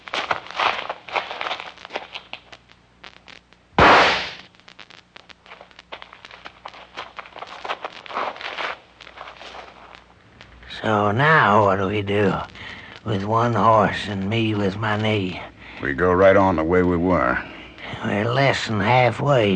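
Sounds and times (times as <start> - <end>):
scuffing and rustling: 0.0 - 2.5, 5.5 - 10.1
gunshot: 3.8 - 4.5
speech: 10.8 - 19.5.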